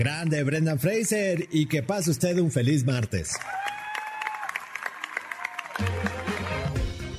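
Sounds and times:
speech: 0:00.0 - 0:03.7, 0:05.8 - 0:06.2
large crowd standing ovation applause: 0:03.3 - 0:07.1.

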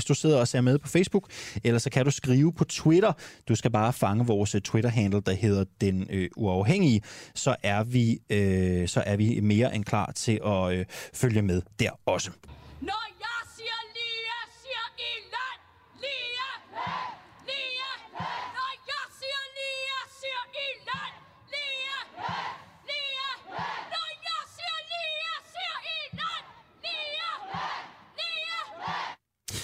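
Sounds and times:
speech: 0:00.1 - 0:13.2
crowd chanting at nurses' demonstration: 0:14.4 - 0:29.2.

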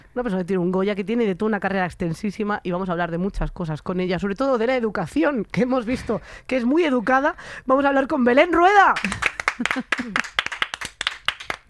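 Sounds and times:
speech: 0:00.2 - 0:10.4
applause: 0:08.9 - 0:11.6.

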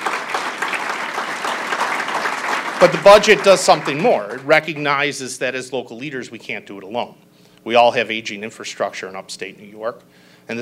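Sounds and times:
audience applause: 0:00.0 - 0:05.0
speech: 0:02.8 - 0:10.5.

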